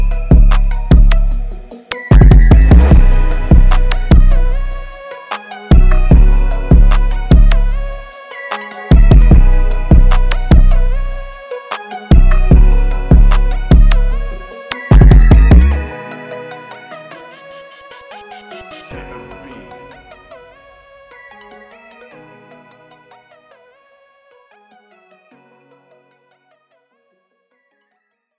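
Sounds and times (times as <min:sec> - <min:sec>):
beats: 0:00.0 - 0:05.0, 0:05.7 - 0:11.4, 0:12.1 - 0:15.8.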